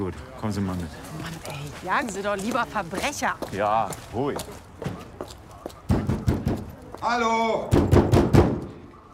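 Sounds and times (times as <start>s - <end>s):
speech: 0.0s - 4.9s, 7.0s - 8.0s
heavy bangs on a door: 7.7s - 8.6s.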